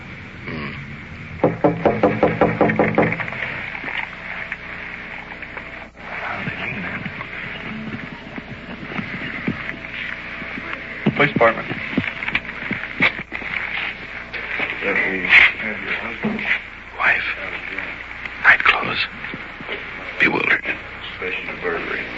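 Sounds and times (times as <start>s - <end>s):
low hum: 0.0s - 22.1s
firm knocks on bungalow door: 1.4s - 3.3s
speech: 11.2s - 11.8s.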